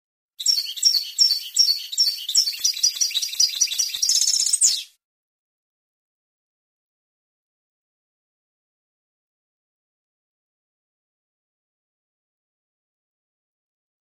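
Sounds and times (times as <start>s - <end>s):
European goldfinch song: 0.4s - 5.0s.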